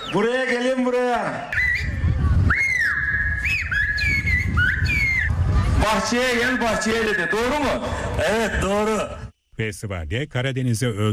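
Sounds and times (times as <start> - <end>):
whistled bird language: 0.0 - 0.3, 1.4 - 5.3, 6.4 - 7.6
speech: 0.1 - 1.6, 5.8 - 11.1.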